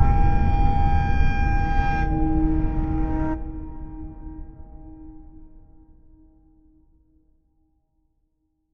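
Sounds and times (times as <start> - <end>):
horror sound: 0.0 - 5.7.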